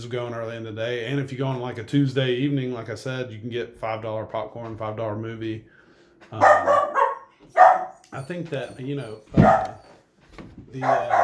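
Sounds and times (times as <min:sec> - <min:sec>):
speech: 0:00.0 - 0:06.9, 0:08.1 - 0:09.8, 0:10.4 - 0:11.2
dog barking: 0:06.4 - 0:08.0, 0:09.3 - 0:10.0, 0:10.8 - 0:11.2.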